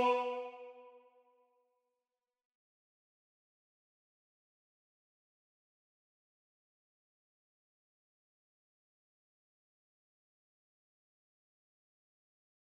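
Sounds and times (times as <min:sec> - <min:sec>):
tenor singing: 0:00.0 - 0:00.8.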